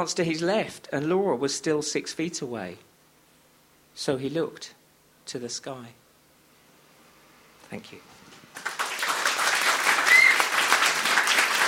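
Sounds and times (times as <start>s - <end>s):
speech: 0.0s - 2.9s, 4.0s - 6.0s, 7.7s - 8.1s
crowd applause: 8.6s - 11.6s
person whooping: 9.9s - 10.7s.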